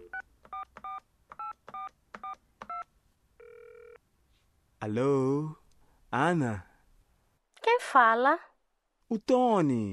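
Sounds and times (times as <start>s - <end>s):
touch-tone telephone keypad beeps as a number is dialed: 0.0s - 2.8s
speech: 4.8s - 6.7s, 7.9s - 8.5s, 9.1s - 9.9s.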